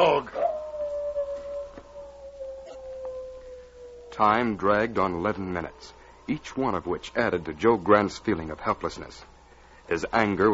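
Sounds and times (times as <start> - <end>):
wolves howling: 0.0 - 7.7
speech: 4.2 - 9.3, 9.9 - 10.5.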